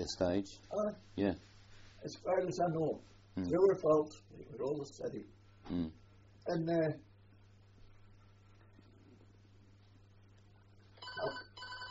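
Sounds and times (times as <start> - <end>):
speech: 0.0 - 7.1
telephone bell ringing: 11.0 - 11.8.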